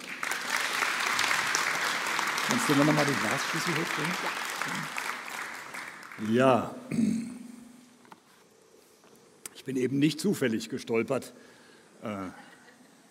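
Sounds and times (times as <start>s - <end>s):
audience applause: 0.0s - 6.6s
speech: 2.5s - 5.0s, 6.2s - 7.4s, 9.6s - 12.5s.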